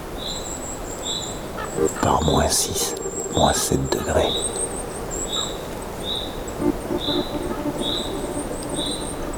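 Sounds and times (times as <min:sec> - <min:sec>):
forest rustling hiss in freezing cold: 0:00.0 - 0:09.3
high piping bird notes: 0:01.3 - 0:09.3
speech: 0:01.8 - 0:04.8.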